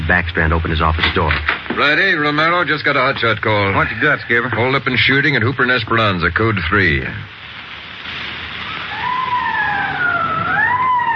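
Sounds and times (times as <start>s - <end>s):
steady hiss: 0.0s - 11.1s
speech: 0.1s - 7.4s
police car wailing siren: 8.5s - 11.1s.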